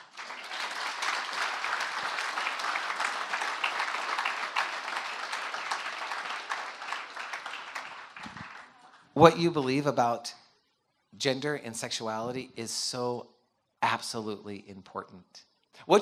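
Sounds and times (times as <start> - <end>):
audience applause: 0.0 - 9.2
speech: 9.2 - 10.4, 11.2 - 16.0.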